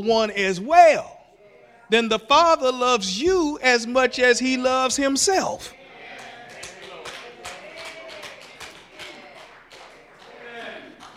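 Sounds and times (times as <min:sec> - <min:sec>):
speech: 0:00.0 - 0:01.2, 0:01.9 - 0:05.8
audience clapping: 0:06.1 - 0:11.1.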